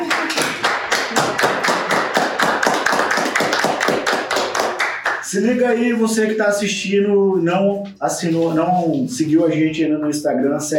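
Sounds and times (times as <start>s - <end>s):
hands clapping: 0.0s - 5.4s
speech: 5.3s - 10.7s.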